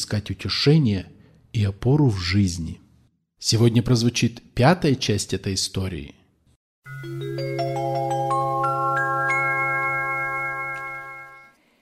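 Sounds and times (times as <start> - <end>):
speech: 0.0 - 2.8, 3.4 - 6.2, 6.8 - 8.1
soft ringing of a small bell: 6.9 - 11.6.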